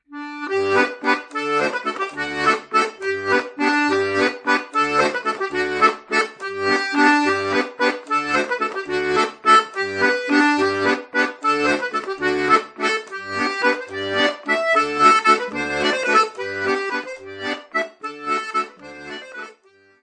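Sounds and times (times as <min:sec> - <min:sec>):
French bourree dance music: 0:00.4 - 0:19.6.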